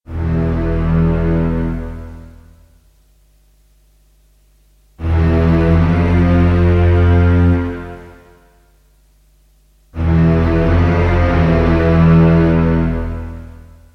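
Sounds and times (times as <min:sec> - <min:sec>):
film score music: 0:00.1 - 0:02.6, 0:05.0 - 0:08.4, 0:10.0 - 0:13.8.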